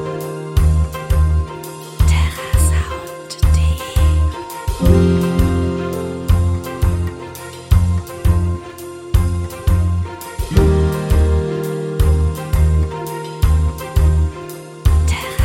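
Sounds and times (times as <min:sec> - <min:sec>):
motivational business theme music: 0:00.0 - 0:15.4.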